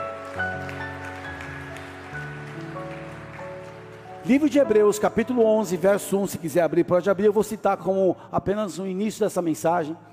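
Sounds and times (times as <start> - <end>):
audience applause: 0.0 - 4.9
speech: 4.3 - 10.1.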